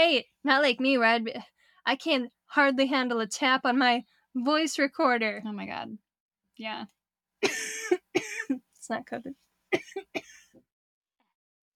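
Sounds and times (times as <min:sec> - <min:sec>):
speech: 0:00.0 - 0:06.0, 0:06.6 - 0:10.4
person coughing: 0:07.4 - 0:08.6, 0:09.8 - 0:10.6.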